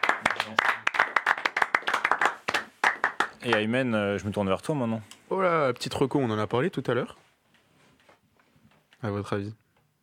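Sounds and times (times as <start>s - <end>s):
hands clapping: 0.0s - 3.8s
speech: 3.4s - 7.2s, 9.0s - 9.6s.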